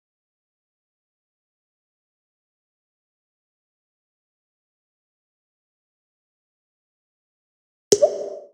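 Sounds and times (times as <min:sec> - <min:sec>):
music beat: 0:08.0 - 0:08.5.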